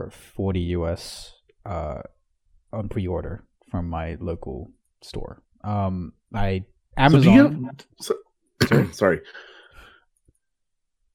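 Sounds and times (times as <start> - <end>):
speech: 0.0 - 9.5
cough: 8.6 - 9.2.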